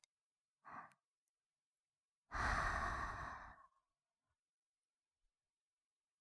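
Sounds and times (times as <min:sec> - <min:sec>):
slow deep breaths through the nose during a breathing exercise: 0:02.4 - 0:03.6.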